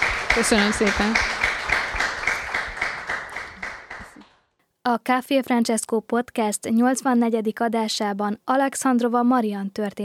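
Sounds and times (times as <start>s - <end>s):
audience applause: 0.0s - 4.3s
speech: 0.4s - 1.4s, 4.9s - 10.0s.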